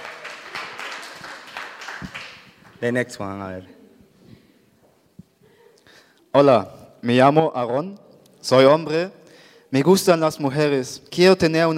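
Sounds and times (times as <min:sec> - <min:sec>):
crowd applauding: 0:00.0 - 0:03.1
speech: 0:02.8 - 0:03.8, 0:06.3 - 0:11.7.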